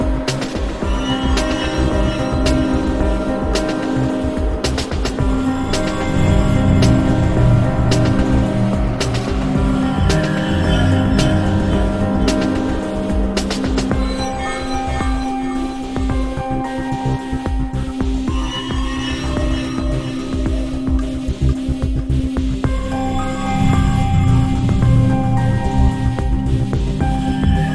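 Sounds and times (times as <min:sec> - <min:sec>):
background music: 0:00.0 - 0:27.7.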